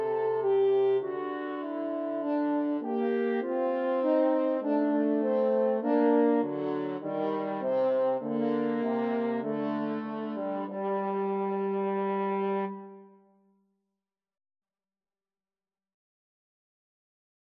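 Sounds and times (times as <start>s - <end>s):
french horn duet: 0.0s - 13.2s.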